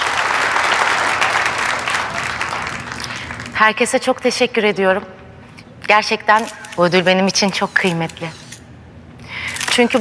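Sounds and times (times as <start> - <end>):
audience applause for an award recipient: 0.0 - 3.6
speech: 3.6 - 5.2, 5.9 - 8.4, 9.8 - 9.9.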